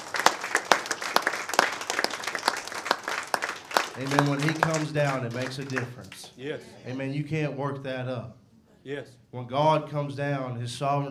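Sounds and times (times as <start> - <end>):
audience clapping hands in dense sustained applause: 0.0 - 6.4
speech: 4.0 - 11.1.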